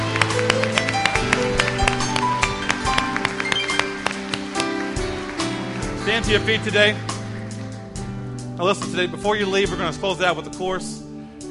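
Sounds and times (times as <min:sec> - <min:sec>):
people clapping: 0:00.0 - 0:07.6
sustained low musical tones: 0:00.0 - 0:11.4
speech: 0:06.2 - 0:07.1, 0:08.6 - 0:11.0.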